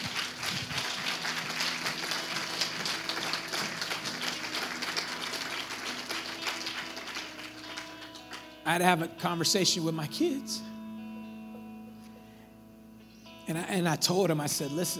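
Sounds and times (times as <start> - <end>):
crowd clapping in praise in a large room: 0.0 - 8.7
speech: 8.7 - 10.7, 13.5 - 14.9.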